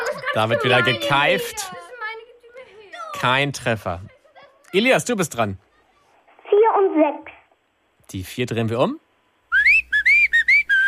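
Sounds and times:
laughter: 0:00.0 - 0:01.9
speech: 0:00.4 - 0:01.8, 0:03.2 - 0:04.1, 0:04.7 - 0:05.7, 0:06.7 - 0:07.4, 0:08.1 - 0:09.0
cheerful whistled tune: 0:09.5 - 0:10.8.

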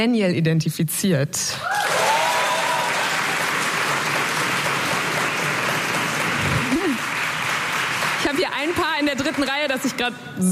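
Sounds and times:
speech: 0:00.0 - 0:02.0, 0:08.6 - 0:10.4
loud audience applause: 0:01.6 - 0:10.0.

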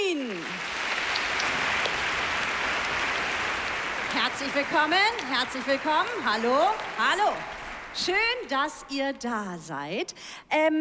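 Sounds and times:
audience applause: 0:00.0 - 0:08.5
speech: 0:04.4 - 0:10.7.

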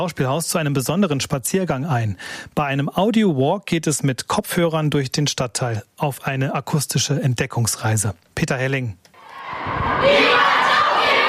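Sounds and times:
speech: 0:00.0 - 0:10.6
children and guests shouting a rallying call in unison on a theatre audio walk: 0:09.2 - 0:11.2.

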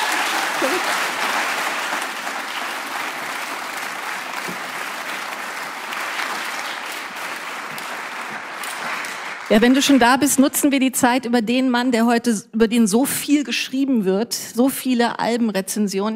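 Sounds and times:
audience applause: 0:00.0 - 0:10.4
speech: 0:00.6 - 0:01.1, 0:09.5 - 0:16.1.

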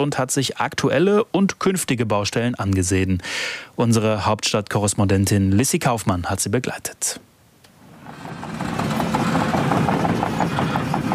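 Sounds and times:
speech: 0:00.0 - 0:07.3
heavy excavators engine drone at construction site: 0:07.8 - 0:11.1
metallic clatter of excavator tracks: 0:07.8 - 0:11.1.

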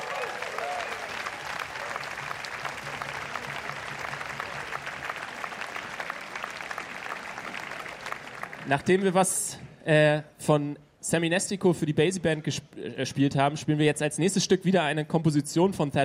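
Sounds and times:
audience applause: 0:00.0 - 0:08.8
speech: 0:08.7 - 0:16.0.

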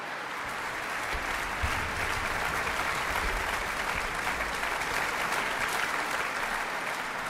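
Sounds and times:
audience applause after a violin performance: 0:00.0 - 0:07.2.

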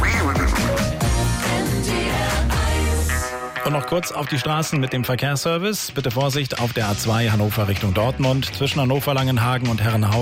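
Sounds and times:
duck quacking: 0:00.0 - 0:01.0
bright radio jingle music: 0:00.7 - 0:05.2
speech: 0:03.7 - 0:10.2.

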